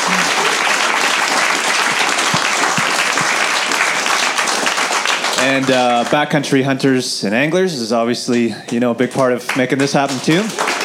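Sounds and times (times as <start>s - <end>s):
audience applause: 0.0s - 6.4s, 9.2s - 10.8s
speech: 5.4s - 10.7s.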